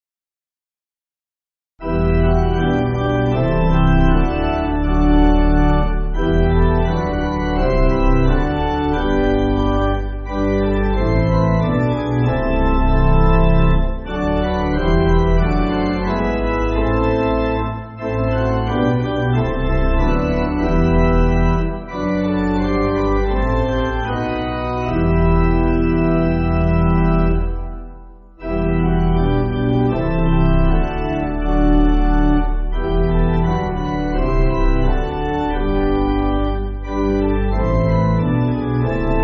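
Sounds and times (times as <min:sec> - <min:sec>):
church pipe organ backing music: 0:01.8 - 0:39.2.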